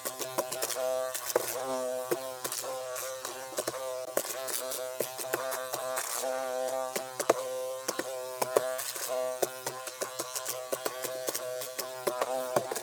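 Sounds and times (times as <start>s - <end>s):
fly trapped inside a container buzzing its wings: 0.0s - 12.8s.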